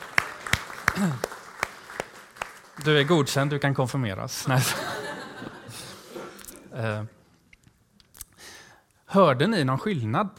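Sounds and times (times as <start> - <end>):
audience applause: 0.0 - 3.7
speech: 1.0 - 1.3, 2.8 - 5.0, 6.8 - 7.2, 9.1 - 10.3
laughter: 4.5 - 6.4.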